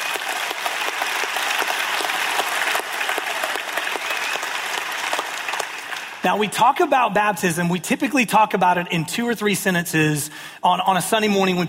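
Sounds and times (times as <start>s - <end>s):
audience clapping: 0.0s - 6.9s
speech: 6.2s - 11.6s.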